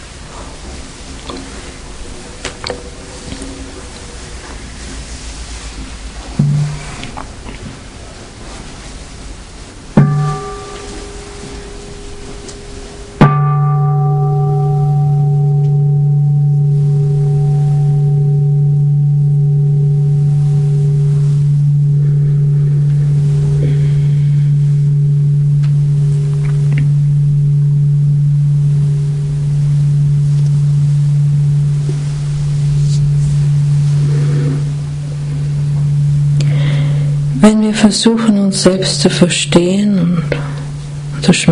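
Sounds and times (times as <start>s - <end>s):
ringing bell: 10.0s - 41.1s
speech: 37.7s - 40.5s, 41.2s - 41.5s.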